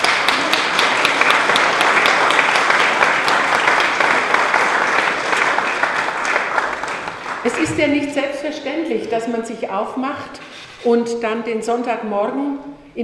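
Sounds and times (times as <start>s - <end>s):
audience applauding the singers: 0.0s - 8.2s
speech: 7.4s - 13.0s.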